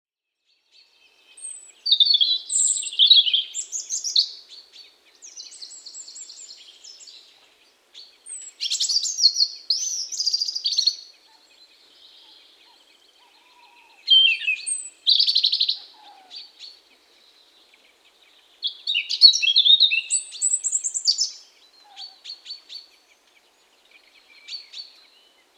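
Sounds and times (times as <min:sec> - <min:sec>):
European robin singing: 0:00.5 - 0:25.5.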